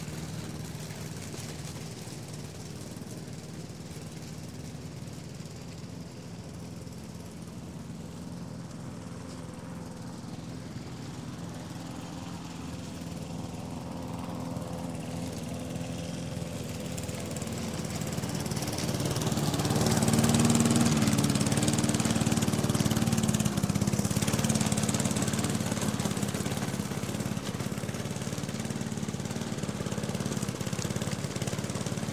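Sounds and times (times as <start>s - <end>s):
gas lawn mower cutting lawn: 0.0s - 32.1s.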